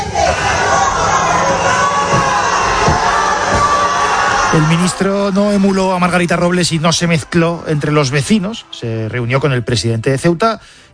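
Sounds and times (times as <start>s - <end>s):
crowd shouting: 0.1s - 9.6s
speech: 4.6s - 10.9s.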